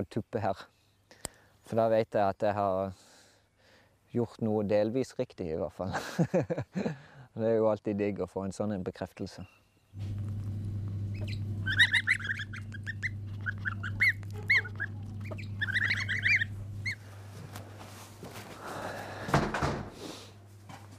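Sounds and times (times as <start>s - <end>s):
speech: 0.0s - 0.8s, 1.7s - 3.1s, 4.1s - 10.3s, 11.2s - 11.4s
laughter: 5.9s - 7.0s
goose goslings peeping in a farm shed: 10.0s - 17.2s
low hum: 10.0s - 18.7s.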